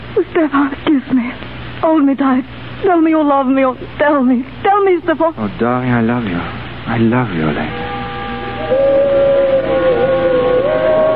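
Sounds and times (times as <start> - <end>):
speech: 0.2 - 7.8
bells ringing: 7.7 - 11.1.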